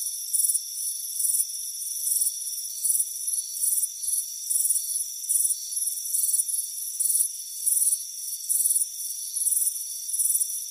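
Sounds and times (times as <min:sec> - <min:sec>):
cricket chirping: 0:00.0 - 0:10.7.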